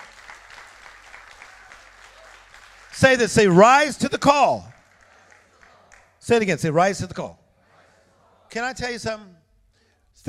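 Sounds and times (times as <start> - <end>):
audience clapping hands: 0.0 - 6.4
speech: 3.0 - 4.7, 6.3 - 7.4, 8.5 - 9.4.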